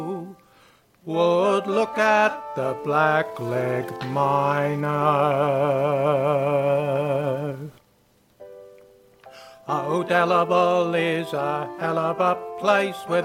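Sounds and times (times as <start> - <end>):
baritone singing a melody: 0.0 - 7.8, 9.6 - 13.2.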